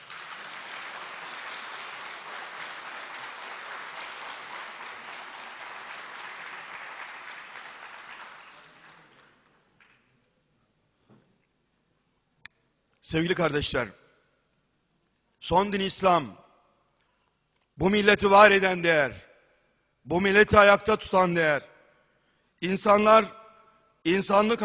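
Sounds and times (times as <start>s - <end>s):
sustained applause from a large crowd: 0.0s - 10.0s
speech: 13.1s - 14.0s, 15.5s - 16.4s, 17.8s - 19.3s, 20.0s - 21.7s, 22.6s - 23.4s, 24.0s - 24.6s.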